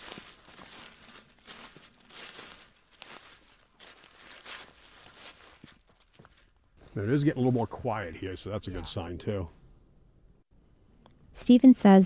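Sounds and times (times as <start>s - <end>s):
leaves and twigs rustling under each step: 0.0s - 7.8s
footsteps crunching on the forest floor walking deeper into the woods: 0.0s - 7.9s
speech: 6.9s - 9.6s, 11.5s - 12.0s.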